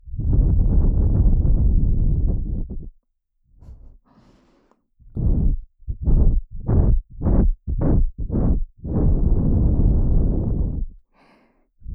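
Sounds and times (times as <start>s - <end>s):
person blowing into left ear in ASMR: 0.0s - 2.9s, 5.1s - 10.9s.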